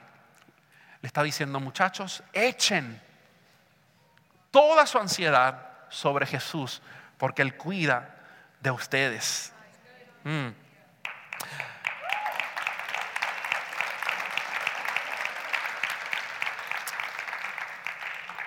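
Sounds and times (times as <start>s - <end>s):
speech: 1.0s - 3.1s, 4.5s - 9.6s, 10.2s - 10.6s
audience applause: 11.1s - 18.4s.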